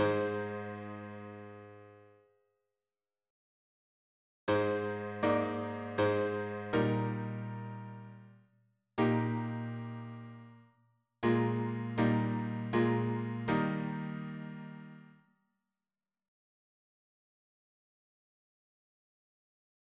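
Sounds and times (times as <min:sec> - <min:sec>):
piano harmony: 0:00.0 - 0:02.0, 0:04.5 - 0:08.2, 0:09.0 - 0:10.5, 0:11.2 - 0:15.0.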